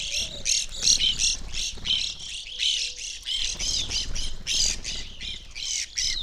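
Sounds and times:
evening grosbeak flock calling: 0:00.0 - 0:06.2.

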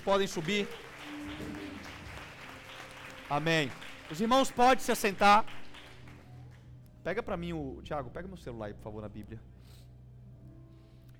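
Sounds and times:
speech: 0:00.0 - 0:01.4, 0:03.3 - 0:05.6, 0:07.0 - 0:09.5
audience applause: 0:00.0 - 0:06.3.

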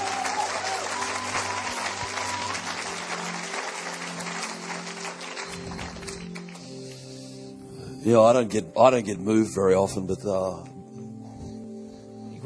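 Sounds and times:
audience applause: 0:00.0 - 0:06.8
speech: 0:08.0 - 0:10.7.

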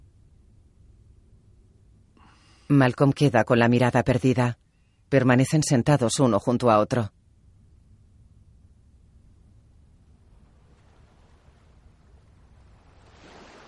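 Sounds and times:
speech: 0:02.7 - 0:07.2
small waves breaking on pebbly riverbank: 0:10.4 - 0:13.6.

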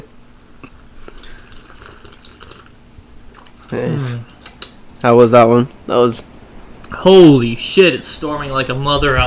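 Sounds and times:
person sipping a drink from a Duck Dynasty cup: 0:00.4 - 0:03.6
speech: 0:03.7 - 0:04.3, 0:05.0 - 0:06.3, 0:07.0 - 0:09.2.

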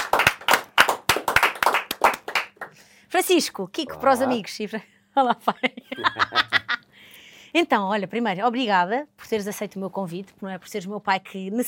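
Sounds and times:
people clapping in the studio: 0:00.0 - 0:02.8
speech: 0:03.2 - 0:06.8, 0:07.5 - 0:11.6
laughter: 0:05.4 - 0:06.8.

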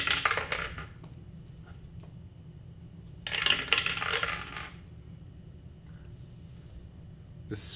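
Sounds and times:
dice tumbling and rattling across a surface: 0:00.0 - 0:01.0, 0:03.3 - 0:04.8
low steady hum: 0:00.0 - 0:07.7.

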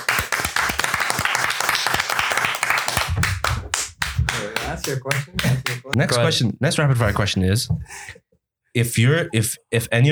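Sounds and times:
people clapping: 0:00.0 - 0:06.2
speech: 0:04.9 - 0:08.2, 0:08.8 - 0:10.0.

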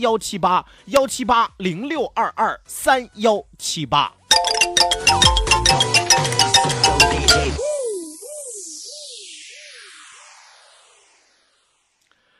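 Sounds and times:
speech: 0:00.0 - 0:05.3
upbeat background music: 0:04.3 - 0:07.6.

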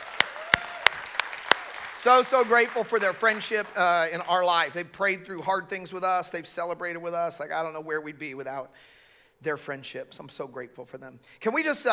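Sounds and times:
audience applause: 0:00.0 - 0:04.4
speech: 0:02.0 - 0:11.9.

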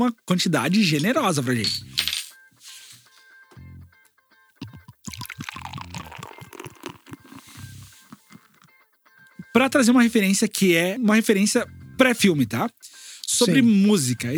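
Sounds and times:
speech: 0:00.0 - 0:02.0, 0:09.6 - 0:12.8, 0:13.4 - 0:14.3
stout beer pouring from a bottle: 0:04.6 - 0:09.8.

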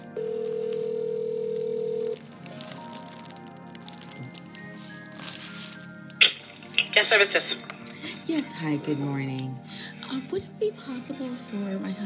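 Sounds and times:
telephone dial tone over a speakerphone: 0:00.2 - 0:02.2
rustling: 0:00.2 - 0:07.6
faint crackling: 0:00.2 - 0:08.0
speech: 0:07.0 - 0:07.7, 0:08.3 - 0:12.0.

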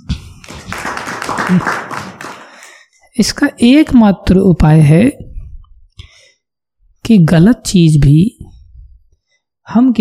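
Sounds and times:
audience clapping: 0:00.2 - 0:02.9
speech: 0:01.5 - 0:01.9, 0:03.2 - 0:05.2, 0:07.1 - 0:08.4, 0:09.7 - 0:10.0.

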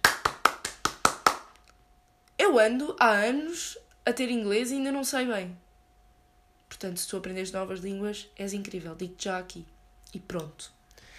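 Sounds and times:
quick sharp hand claps: 0:00.0 - 0:01.7
speech: 0:02.5 - 0:05.6, 0:06.8 - 0:11.1.

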